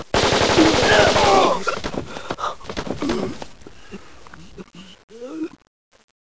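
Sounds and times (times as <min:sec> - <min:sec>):
machine gun firing: 0:00.0 - 0:02.1.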